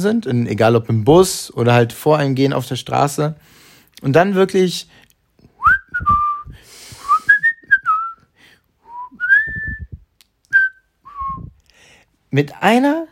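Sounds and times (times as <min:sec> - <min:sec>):
speech: 0:00.0 - 0:05.0, 0:06.0 - 0:06.2, 0:12.3 - 0:13.0
person whistling: 0:05.6 - 0:11.6.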